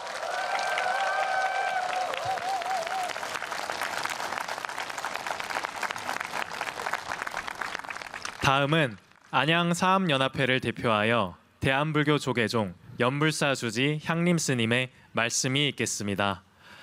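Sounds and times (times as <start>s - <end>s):
audience applause after performances: 0.0s - 8.7s
audience cheers and whistles: 0.1s - 3.3s
speech: 8.4s - 16.5s.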